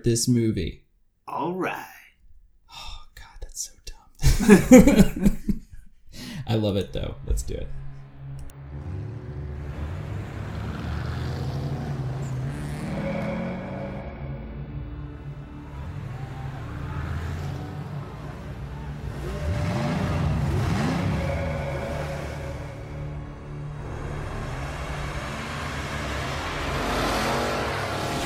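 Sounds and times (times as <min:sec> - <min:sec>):
speech: 0:00.0 - 0:01.9, 0:03.6 - 0:03.8, 0:04.4 - 0:05.5, 0:06.5 - 0:07.8
laughter: 0:04.2 - 0:06.4
car engine starting with a key in the ignition and revving: 0:07.0 - 0:28.2.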